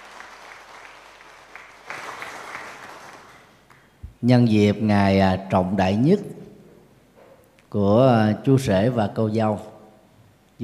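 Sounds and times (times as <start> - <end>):
wedding guests applauding: 0.0 - 4.0
speech: 4.2 - 6.4, 7.7 - 9.7.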